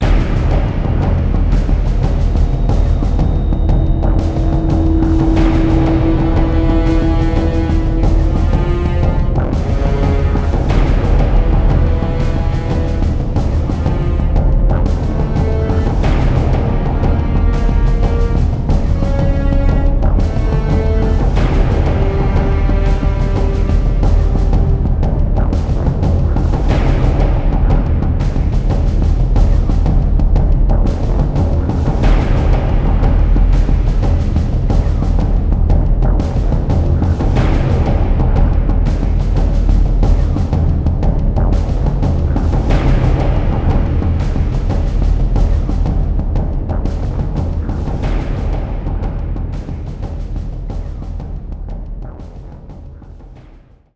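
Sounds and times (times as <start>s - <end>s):
music: 0.0s - 53.9s.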